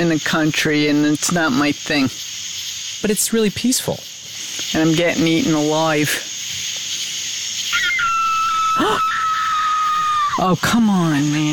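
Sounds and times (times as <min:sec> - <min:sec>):
speech: 0:00.0 - 0:02.3, 0:03.0 - 0:06.3, 0:10.4 - 0:11.5
steady drone of night insects: 0:00.0 - 0:11.5
coyote or fox calling at night: 0:07.6 - 0:10.6.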